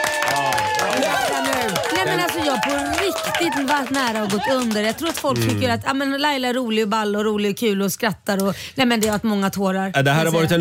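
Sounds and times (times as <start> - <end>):
small applause: 0.0 - 5.8
speech: 2.6 - 10.5.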